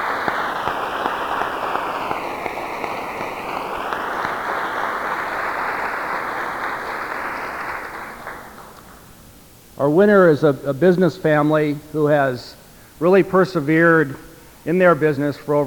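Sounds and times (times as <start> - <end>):
audience applause: 0.0 - 9.1
speech: 9.8 - 15.6.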